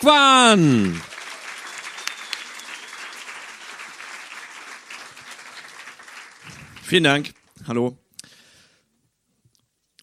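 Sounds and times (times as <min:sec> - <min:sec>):
speech: 0:00.0 - 0:01.1, 0:06.9 - 0:08.0
audience applause: 0:00.1 - 0:07.6.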